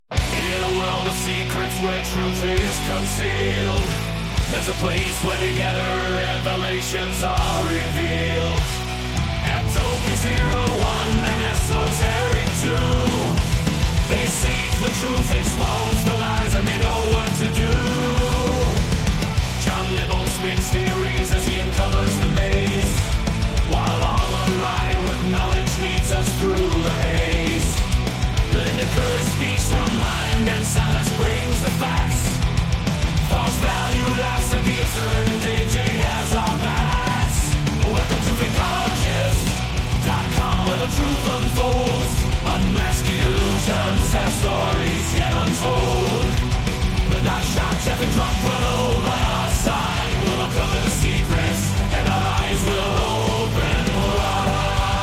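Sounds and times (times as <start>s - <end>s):
hard rock music: 0.0s - 55.0s.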